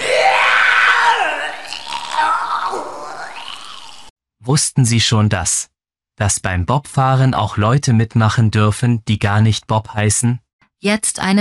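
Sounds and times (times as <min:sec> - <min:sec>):
person vomiting into a stairwell: 0:00.0 - 0:04.1
speech: 0:04.4 - 0:11.3.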